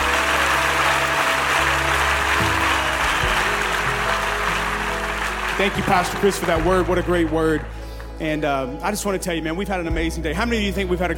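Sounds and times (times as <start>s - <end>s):
audience clapping hands: 0.0s - 8.9s
speech: 5.6s - 11.1s.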